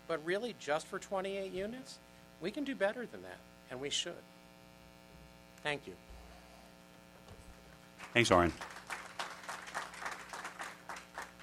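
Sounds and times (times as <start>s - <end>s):
speech: 0.1s - 4.4s, 5.6s - 6.1s, 8.1s - 8.8s
audience applause at public meeting: 8.0s - 11.4s.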